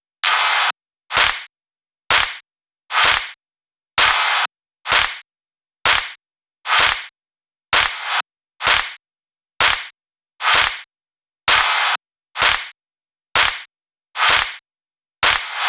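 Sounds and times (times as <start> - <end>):
rap club mix with claps at 128 BPM: 1.1 - 1.5, 2.1 - 2.4, 3.0 - 3.4, 4.0 - 5.2, 5.9 - 7.1, 7.8 - 9.0, 9.6 - 10.9, 11.5 - 12.8, 13.4 - 14.6, 15.2 - 15.6.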